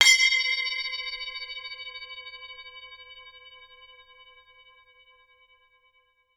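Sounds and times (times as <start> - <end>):
spinning bells chiming: 0.0 - 1.2.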